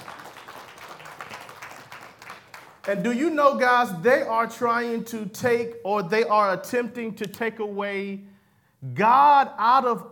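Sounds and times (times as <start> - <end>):
church congregation applause: 0.0 - 3.1
speech: 2.9 - 10.1.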